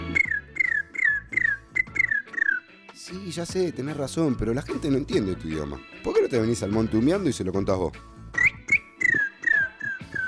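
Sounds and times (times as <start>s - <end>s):
person whistling bird chirps: 0.0s - 2.6s, 8.4s - 10.2s
speech: 3.1s - 8.1s.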